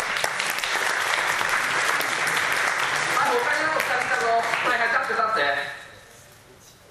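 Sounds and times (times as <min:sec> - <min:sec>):
audience applause: 0:00.0 - 0:04.8
speech: 0:04.3 - 0:05.8.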